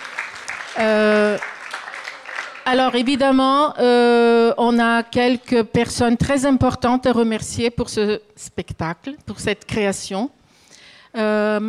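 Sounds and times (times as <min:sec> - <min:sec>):
audience applauding: 0:00.0 - 0:03.4
speech: 0:00.8 - 0:01.5, 0:02.6 - 0:10.4, 0:11.1 - 0:11.6.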